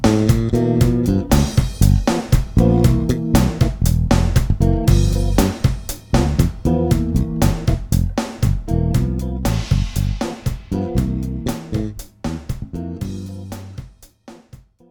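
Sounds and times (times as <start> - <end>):
funk rhythm: 0.0 - 14.8.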